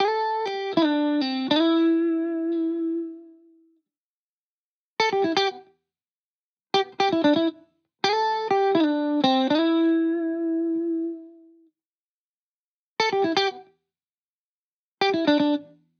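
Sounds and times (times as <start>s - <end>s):
70s style guitars in A minor at 120 BPM: 0.0s - 3.5s, 5.0s - 5.7s, 6.8s - 11.5s, 13.0s - 13.7s, 15.0s - 15.8s.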